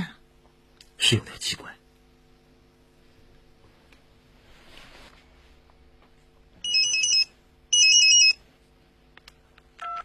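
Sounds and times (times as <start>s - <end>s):
speech: 1.0s - 1.8s
mobile phone ringtone: 6.6s - 8.4s.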